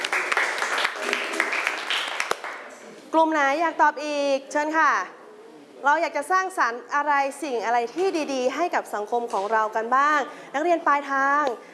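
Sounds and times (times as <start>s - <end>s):
students clapping: 0.0s - 2.8s
speech: 3.2s - 5.2s, 5.8s - 11.7s.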